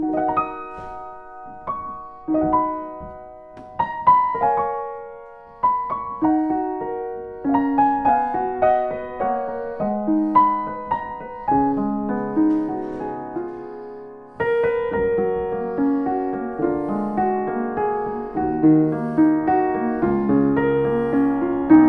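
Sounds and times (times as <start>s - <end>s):
Pfeiffer 116T piano: 0.0s - 21.8s.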